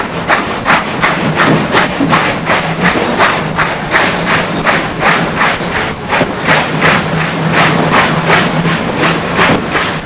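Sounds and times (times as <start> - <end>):
train motor: 0.0 - 10.0.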